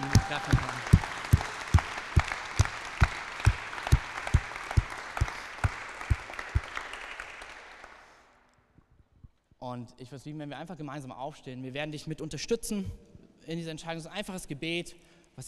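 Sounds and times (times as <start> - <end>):
audience applauding: 0.0 - 8.3
speech: 0.3 - 1.0, 9.8 - 15.4.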